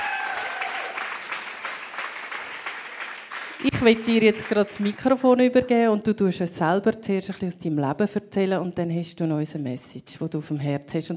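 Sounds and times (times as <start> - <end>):
warm applause from audience: 0.0 - 5.0
speech: 3.6 - 11.1.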